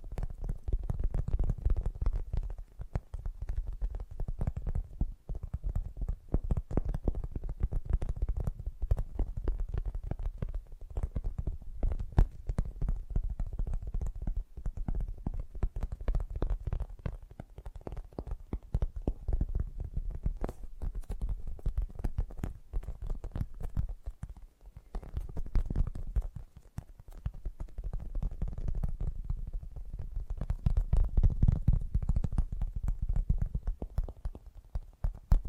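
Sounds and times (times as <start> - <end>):
gentle fast tapping: 0.0 - 35.4.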